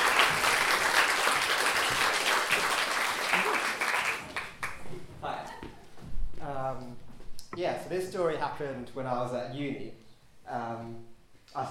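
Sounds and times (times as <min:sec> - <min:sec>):
crowd applauding: 0:00.0 - 0:05.0
speech: 0:07.9 - 0:11.7.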